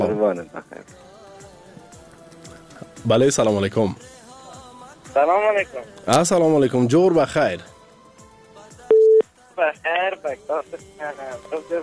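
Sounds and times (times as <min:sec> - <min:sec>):
speech: 0:00.0 - 0:01.1, 0:03.0 - 0:04.1, 0:05.2 - 0:07.8, 0:09.6 - 0:11.8
studio telephone dialing tone: 0:08.9 - 0:09.2.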